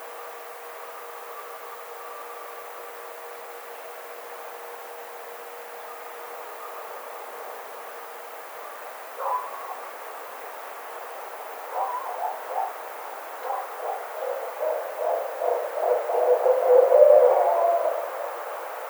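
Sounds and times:
barred owl hooting and cackling: 11.7 - 18.5.

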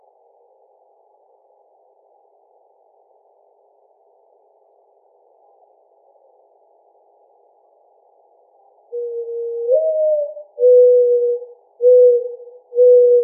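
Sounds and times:
mourning dove cooing: 8.9 - 13.2.

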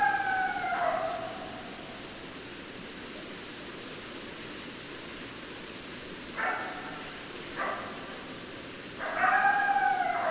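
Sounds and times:
coyote howling: 0.0 - 1.8, 9.0 - 10.2
soft background hiss: 0.0 - 10.2.

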